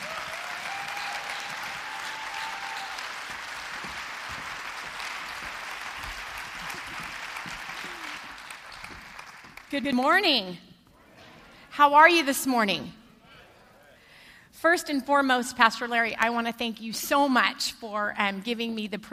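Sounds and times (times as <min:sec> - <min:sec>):
church congregation applause welcoming a speaker: 0:00.0 - 0:09.8
speech: 0:09.7 - 0:10.7, 0:11.8 - 0:13.0, 0:14.6 - 0:19.1.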